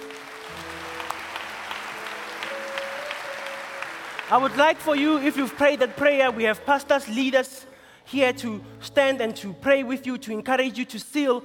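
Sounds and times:
audience clapping: 0:00.0 - 0:07.4
speech: 0:04.3 - 0:11.4.

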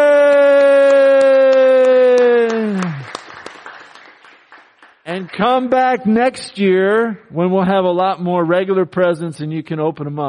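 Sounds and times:
round of applause: 0:00.0 - 0:05.7
speech: 0:05.4 - 0:10.2.

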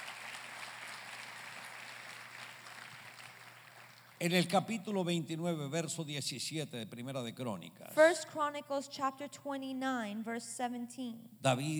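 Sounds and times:
audience applause: 0:00.0 - 0:04.6
speech: 0:04.2 - 0:11.7.

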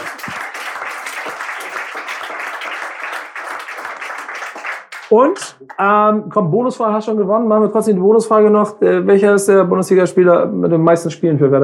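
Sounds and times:
audience applause: 0:00.0 - 0:05.8
speech: 0:05.1 - 0:11.6.

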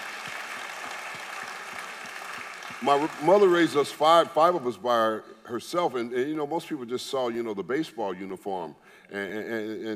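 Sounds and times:
audience clapping: 0:00.0 - 0:04.6
speech: 0:02.8 - 0:09.9.

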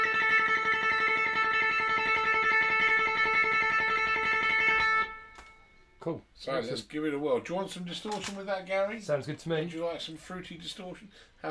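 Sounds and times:
electric guitar tremolo picking on one string: 0:00.0 - 0:05.9
speech: 0:06.0 - 0:11.4.

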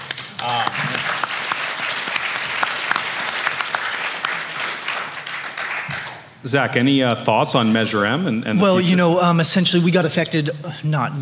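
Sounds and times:
audience clapping: 0:00.0 - 0:06.4
speech: 0:06.4 - 0:11.2.

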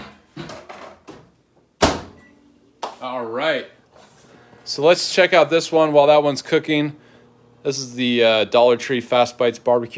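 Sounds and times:
microwave oven door being shut: 0:01.8 - 0:02.2
speech: 0:03.0 - 0:03.8, 0:04.7 - 0:07.0, 0:07.6 - 0:09.9.

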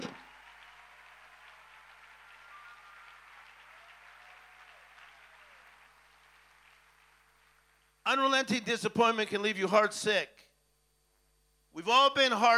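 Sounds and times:
audience clapping: 0:00.0 - 0:08.0
speech: 0:08.1 - 0:10.5, 0:11.8 - 0:12.5.

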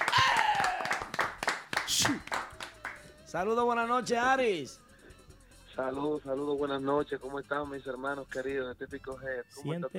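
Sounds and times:
applause: 0:00.0 - 0:03.0
speech: 0:03.3 - 0:04.8, 0:05.8 - 0:09.9.

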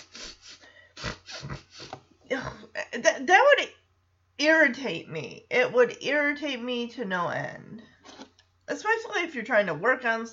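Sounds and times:
voice imitating someone sniffling in a person's ear: 0:00.0 - 0:02.7
speech: 0:04.4 - 0:07.8, 0:08.7 - 0:10.3.

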